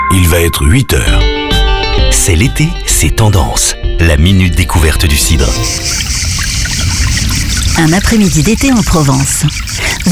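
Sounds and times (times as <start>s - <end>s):
speech: 0.1s - 1.3s, 2.1s - 6.9s, 7.8s - 10.1s
fountain water murmuring: 5.3s - 10.1s.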